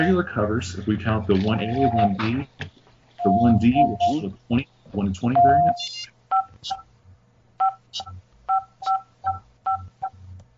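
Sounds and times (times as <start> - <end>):
speech: 0.0 - 6.8, 7.9 - 8.2
low steady hum: 0.0 - 10.5
home alarm system keypad dual-tone beeps: 1.7 - 2.2, 3.2 - 4.2, 5.4 - 6.8, 7.6 - 10.2.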